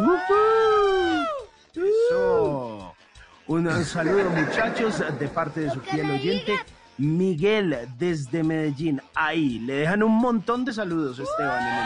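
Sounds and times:
sound effect of girls screaming: 0:00.0 - 0:02.5, 0:11.2 - 0:11.8
speech: 0:00.2 - 0:00.4, 0:03.5 - 0:11.8
laughter: 0:03.5 - 0:05.9.

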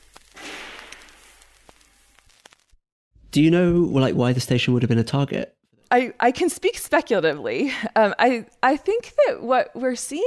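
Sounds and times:
gunfire in station offices: 0:00.3 - 0:01.5
speech: 0:03.4 - 0:10.2.

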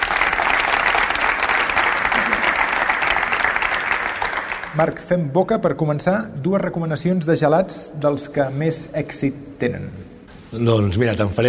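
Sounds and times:
loud audience applause: 0:00.0 - 0:04.9
speech: 0:04.8 - 0:11.4.

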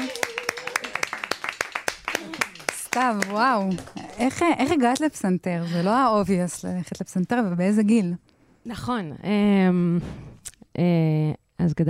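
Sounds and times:
hand claps: 0:00.0 - 0:05.1
speech: 0:03.0 - 0:10.2, 0:10.8 - 0:11.8.

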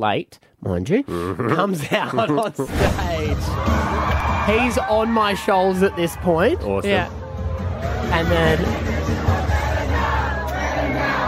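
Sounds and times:
speech: 0:00.0 - 0:07.2, 0:07.8 - 0:08.8
large concert crowd cheering: 0:03.2 - 0:11.2.

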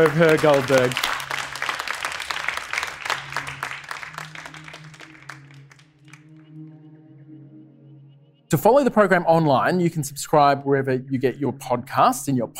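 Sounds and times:
speech: 0:00.0 - 0:01.1, 0:08.5 - 0:12.5
audience round of applause: 0:00.0 - 0:06.4.

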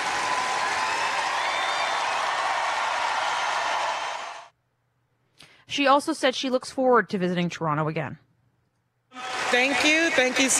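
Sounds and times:
stadium crowd cheering and applauding: 0:00.0 - 0:04.5, 0:09.1 - 0:10.5
speech: 0:05.7 - 0:08.2, 0:09.5 - 0:10.5.

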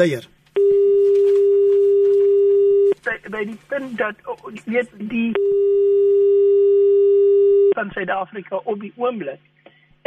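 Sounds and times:
speech: 0:00.0 - 0:00.4, 0:03.3 - 0:06.1, 0:07.8 - 0:10.0
telephone line tone while calling: 0:00.6 - 0:03.0, 0:05.4 - 0:07.8.

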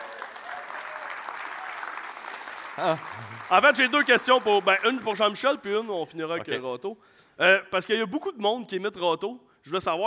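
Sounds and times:
audience applause: 0:00.0 - 0:06.0
speech: 0:02.8 - 0:10.0.

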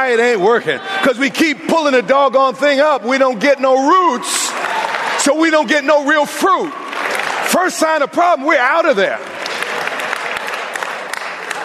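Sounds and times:
speech: 0:00.0 - 0:04.5, 0:05.2 - 0:06.8, 0:07.5 - 0:09.3
audience clapping: 0:04.3 - 0:11.6.

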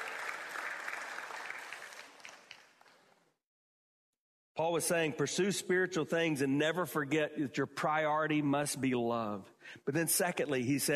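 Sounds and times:
audience applause cheering a person on: 0:00.0 - 0:03.1
speech: 0:04.6 - 0:10.9.

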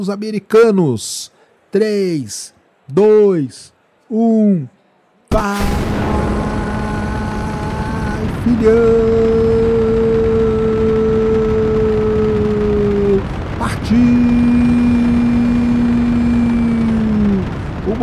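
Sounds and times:
speech: 0:00.0 - 0:06.0, 0:08.4 - 0:09.2
rocket engine roaring: 0:05.5 - 0:18.0.

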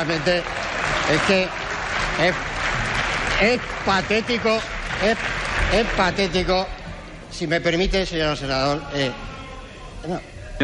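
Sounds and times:
speech: 0:00.0 - 0:02.5, 0:03.4 - 0:09.3, 0:10.0 - 0:10.6
applause in parliament: 0:00.0 - 0:06.6.

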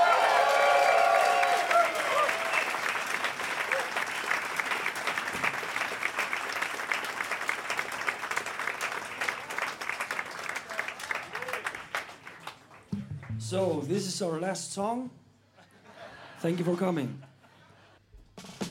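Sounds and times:
audience applause welcoming a musician on stage: 0:00.0 - 0:13.7
speech: 0:13.5 - 0:15.2, 0:16.4 - 0:17.3
laughter: 0:15.5 - 0:18.0.

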